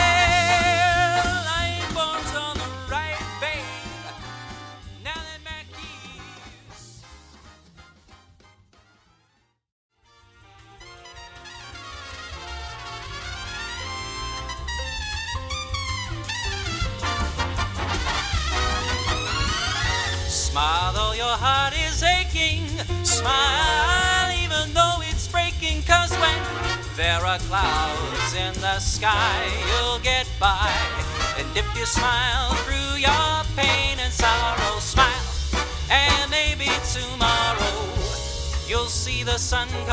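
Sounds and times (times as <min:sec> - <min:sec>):
jazz singer singing: 0:00.0 - 0:07.2, 0:18.6 - 0:39.9
backing track music: 0:00.0 - 0:09.3, 0:10.0 - 0:39.9.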